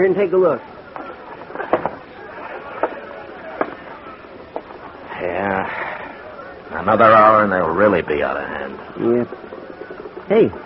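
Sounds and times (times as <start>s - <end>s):
speech: 0.0s - 0.7s, 6.7s - 9.6s, 10.3s - 10.6s
night crowd chatter in street: 0.0s - 10.6s.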